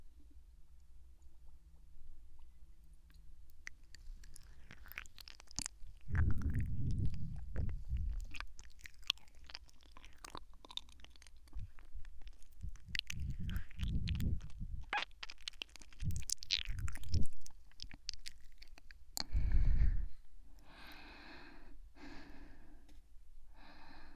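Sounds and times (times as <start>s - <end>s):
someone chewing the last of the medicine: 3.5s - 19.4s.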